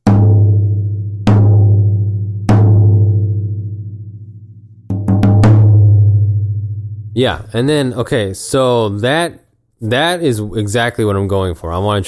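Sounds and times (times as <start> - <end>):
tom drum hits with bottom head tuned lower than top: 0.0 - 4.1, 4.9 - 7.3
speech: 7.2 - 12.0.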